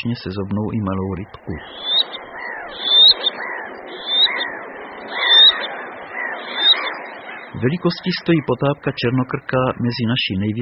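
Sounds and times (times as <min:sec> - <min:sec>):
speech: 0:00.0 - 0:01.9, 0:07.5 - 0:10.5
softer lower chattering calls: 0:00.0 - 0:10.1
black-necked grebe whistled calls: 0:01.5 - 0:08.7.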